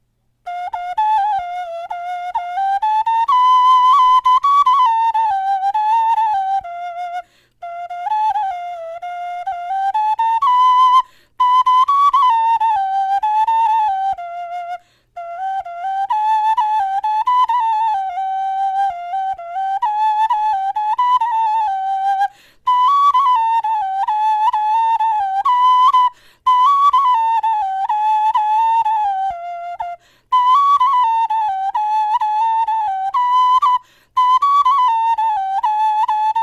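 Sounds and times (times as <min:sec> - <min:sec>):
bone flute melody: 0:00.4 - 0:36.4.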